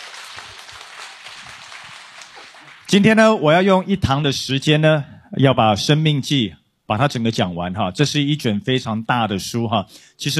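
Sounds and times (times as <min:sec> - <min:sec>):
audience applause at a Bible teaching session: 0:00.0 - 0:03.0
speech: 0:02.9 - 0:10.3.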